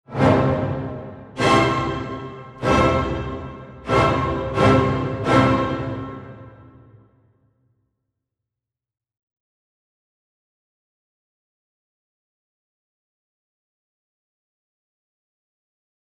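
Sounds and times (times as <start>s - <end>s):
space orchestral cadence: 0.1s - 7.1s.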